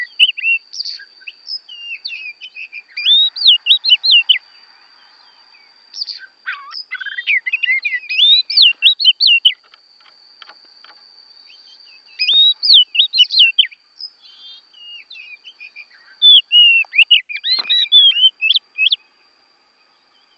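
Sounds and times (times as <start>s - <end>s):
Oriental magpie-robin song: 0.0s - 4.4s, 5.9s - 9.7s, 11.5s - 19.0s.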